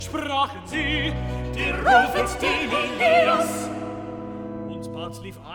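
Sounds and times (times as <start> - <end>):
choir singing: 0.1 - 5.2.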